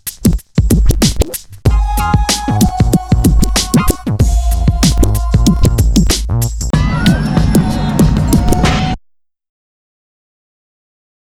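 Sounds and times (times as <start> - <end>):
scratching: 0.0 - 1.6, 2.5 - 4.1, 4.8 - 8.9.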